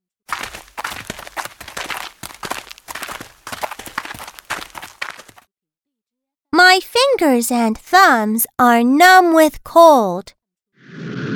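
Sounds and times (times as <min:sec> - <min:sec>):
footsteps of people heading out for a winter walk: 0:00.3 - 0:05.5
speech: 0:06.8 - 0:10.4.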